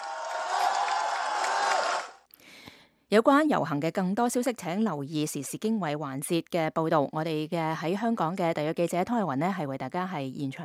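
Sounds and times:
protest crowd clapping loudly: 0.0 - 2.2
speech: 3.1 - 10.6.

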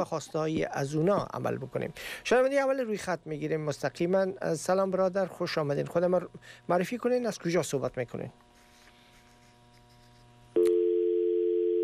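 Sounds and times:
speech: 0.0 - 8.4
faint low hum: 0.0 - 11.8
steady electronic telephone tone after a caller's call drops on a phone-in line: 10.6 - 11.8.

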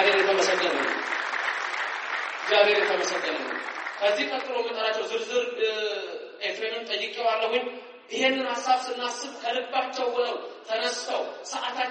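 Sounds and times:
applause in a church: 0.0 - 5.2
speech: 2.5 - 11.8.

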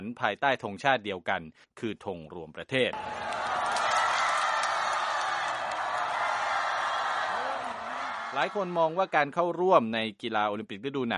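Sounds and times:
speech: 0.2 - 3.8, 8.3 - 11.1
large crowd cheering at hockey game: 2.9 - 9.2
sharp claps: 3.0 - 8.9.

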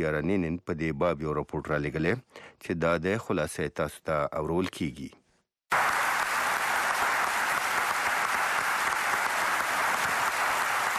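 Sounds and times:
speech: 0.0 - 5.2
Arab League foreign ministers applauding in Cairo: 5.7 - 10.9.

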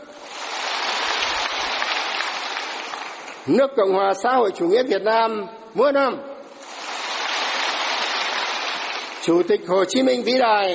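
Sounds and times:
applause of hundreds of party members: 0.2 - 3.5, 6.6 - 9.2
speech: 3.4 - 6.3, 9.2 - 10.7.

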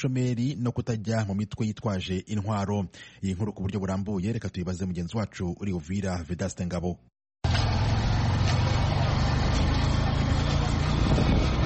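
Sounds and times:
speech: 0.0 - 7.7
motorcycle taxi engines and traffic at a parking lot in Uvira town: 7.4 - 11.6.

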